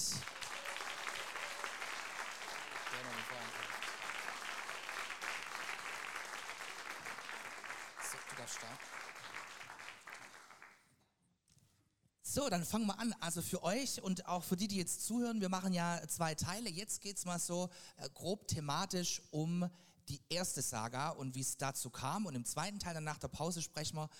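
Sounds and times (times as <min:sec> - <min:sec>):
crowd clapping: 0:00.0 - 0:10.9
speech: 0:03.0 - 0:03.8, 0:08.5 - 0:09.0, 0:12.4 - 0:24.1.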